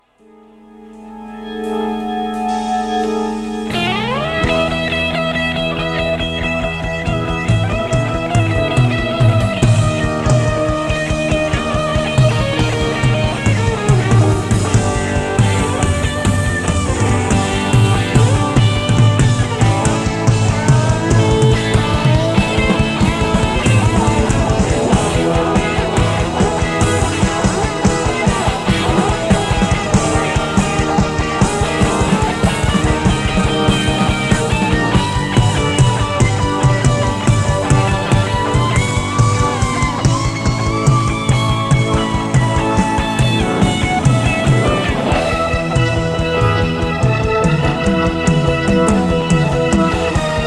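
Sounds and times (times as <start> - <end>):
solo guitar: 0.0 - 50.4.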